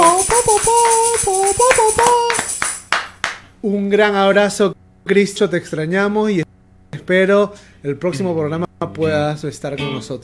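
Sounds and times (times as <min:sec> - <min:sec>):
applause: 0:00.0 - 0:03.5
speech: 0:03.6 - 0:06.4, 0:07.1 - 0:10.2.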